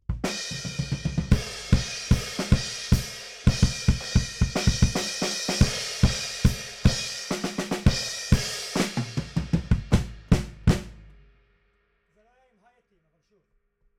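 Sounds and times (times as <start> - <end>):
bass drum: 0.0 - 11.3.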